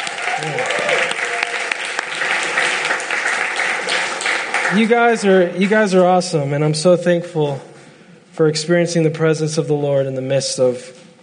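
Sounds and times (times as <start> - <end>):
audience applause: 0.0 - 5.3
speech: 0.4 - 1.2, 4.7 - 7.7, 8.4 - 11.0.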